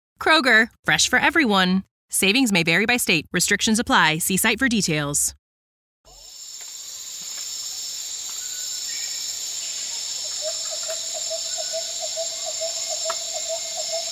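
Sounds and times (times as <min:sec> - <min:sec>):
speech: 0:00.2 - 0:05.4
insect drone in Borneo tropical rainforest: 0:06.1 - 0:14.1
scattered calls in Borneo tropical rainforest: 0:07.0 - 0:14.1
rapid repeated chirping call: 0:08.5 - 0:14.1.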